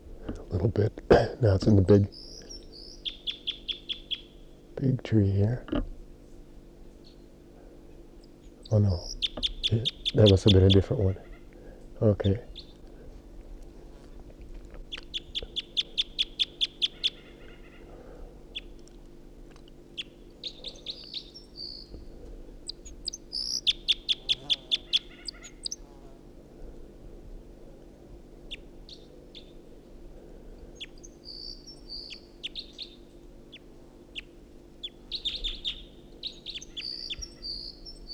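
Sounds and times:
two birds singing: 0.0s - 13.6s, 14.7s - 26.2s, 28.4s - 38.1s
speech: 0.3s - 2.3s, 4.8s - 5.9s, 8.7s - 11.3s, 12.0s - 12.6s.

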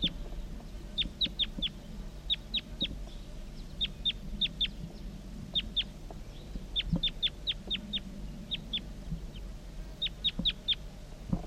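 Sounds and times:
wild bird calling: 0.0s - 11.4s.

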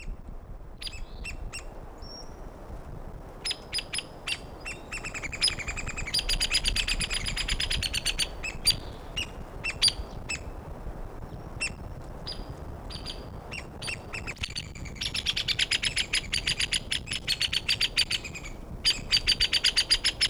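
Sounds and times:
female woodpecker giving low-pitched calls near a probable nest site: 0.8s - 2.4s, 3.4s - 10.6s, 11.3s - 20.2s
male woodpecker giving loud calls near a probable nest site: 3.4s - 10.5s, 11.6s - 20.2s.

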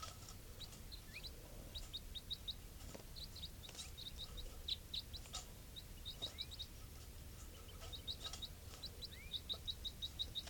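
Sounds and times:
low hum: 0.0s - 10.4s
soft type 4 bird calls: 0.0s - 10.4s.

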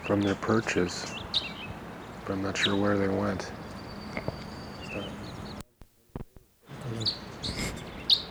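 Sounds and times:
wild crossbills calling in flight: 0.0s - 5.6s, 6.7s - 8.2s
speech: 0.1s - 1.5s, 2.3s - 3.6s.

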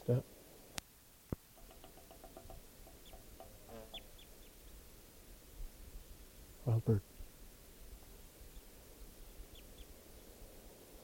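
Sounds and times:
speech: 0.0s - 0.4s, 6.7s - 7.1s
wild bird calls: 1.6s - 4.8s, 8.1s - 10.3s.

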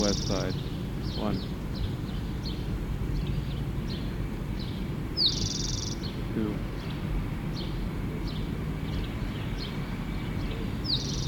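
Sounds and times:
speech: 0.0s - 1.6s, 6.4s - 6.7s
bird singing from a pine: 0.0s - 11.2s.

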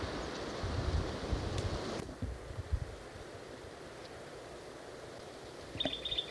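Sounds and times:
strong wind blowing through a dry canyon wash: 0.0s - 3.8s
high bird chirp: 5.8s - 6.3s.

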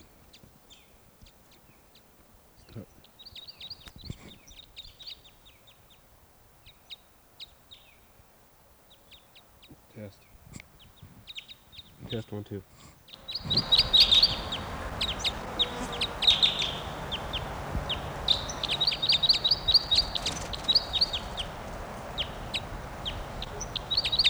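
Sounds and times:
speech: 2.8s - 3.0s, 12.1s - 12.9s
low rumble: 13.2s - 24.2s
male bird calling: 13.2s - 24.2s.

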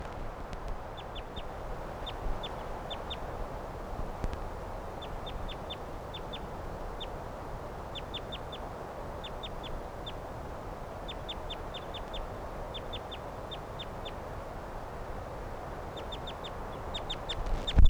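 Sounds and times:
flock of birds chirping: 0.8s - 17.8s.

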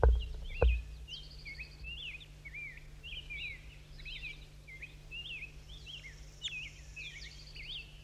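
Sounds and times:
dull thumps: 0.0s - 1.0s
low constant hum: 0.0s - 8.0s
wild bird chirping: 0.0s - 8.0s.

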